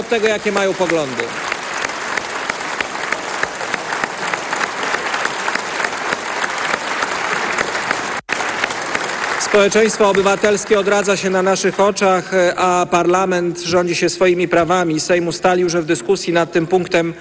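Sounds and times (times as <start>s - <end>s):
speech: 0.0s - 1.5s, 9.5s - 17.1s
warm applause in parliament chamber: 0.0s - 12.4s.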